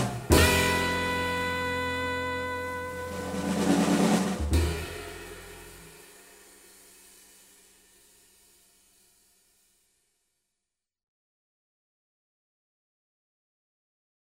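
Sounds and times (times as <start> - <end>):
groove blues saxophone: 0.0 - 6.0.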